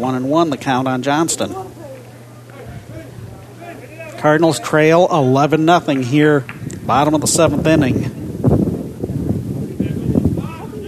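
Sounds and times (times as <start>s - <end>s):
speech: 0.0s - 1.8s, 4.2s - 8.2s
wind buffeting a field microphone at a baseball game: 2.6s - 4.8s, 5.7s - 10.8s.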